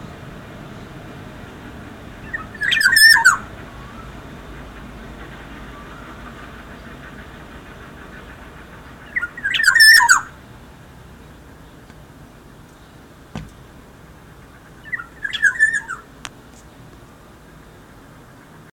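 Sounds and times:
black-naped oriole singing a rich whistle: 2.2 - 4.1, 9.0 - 10.4, 14.8 - 16.1.

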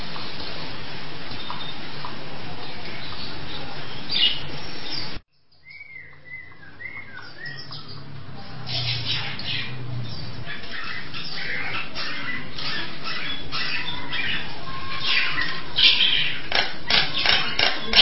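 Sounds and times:
Nias hill myna giving harsh rasping calls: 6.7 - 18.0.

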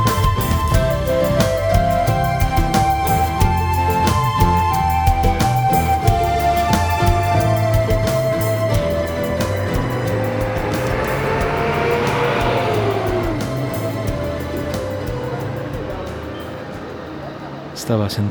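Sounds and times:
steady street traffic with engine rumble and tire hiss: 0.0 - 18.2
car engine tone sliding downward as it passes: 7.4 - 18.2.

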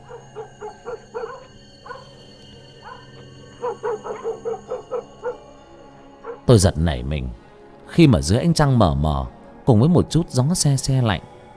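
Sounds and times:
dog barking: 0.0 - 2.2, 2.8 - 5.6, 6.2 - 6.5
speech: 6.5 - 11.3.

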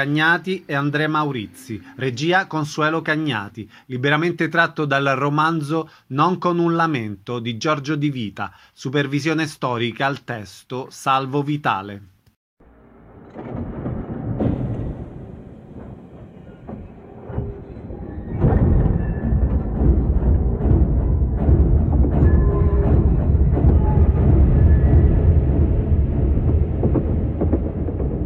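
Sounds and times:
speech: 0.0 - 12.1
littorina railcar rumbling on single track between Capaci and Cinisi at night: 14.4 - 28.1.

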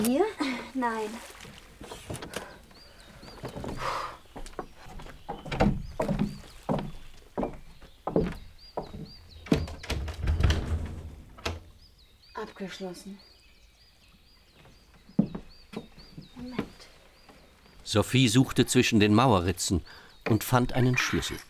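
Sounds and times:
speech: 0.0 - 2.1, 12.6 - 13.3, 17.9 - 21.4
high bird chirps: 0.0 - 21.4
rowboat being dragged up onto the shore: 1.4 - 2.6.

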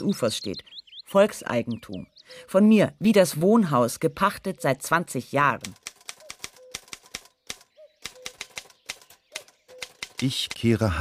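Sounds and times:
speech: 0.0 - 5.8, 10.2 - 10.9
mechanical typewriter keys clacking: 5.6 - 10.7.

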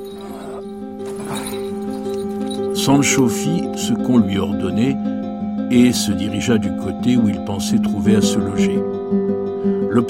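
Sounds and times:
ridden donkey hooves clip-clopping: 0.0 - 2.8
speech: 2.8 - 5.0, 5.7 - 9.4.

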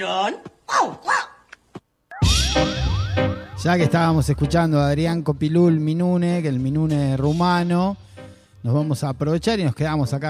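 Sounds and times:
speech: 0.0 - 1.2, 3.6 - 10.2
cartoon detective dog yelping barks: 0.7 - 1.5
busy cartoon-style music with swooping tones: 2.1 - 4.7.

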